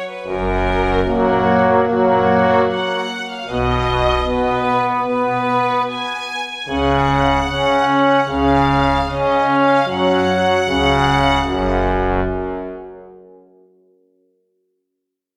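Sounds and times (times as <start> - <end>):
bass line: 0.2 - 6.0, 6.7 - 13.1.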